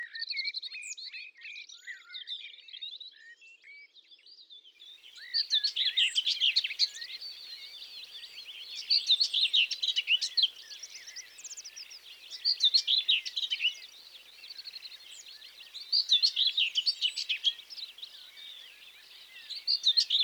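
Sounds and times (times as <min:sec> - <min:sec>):
nature sounds: 0:04.8 - 0:20.2
common whitethroat singing: 0:04.9 - 0:20.2.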